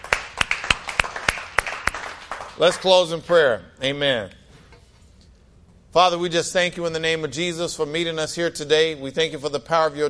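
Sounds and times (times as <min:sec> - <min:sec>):
audience clapping: 0:00.0 - 0:03.4
speech: 0:02.6 - 0:04.4, 0:06.0 - 0:10.0.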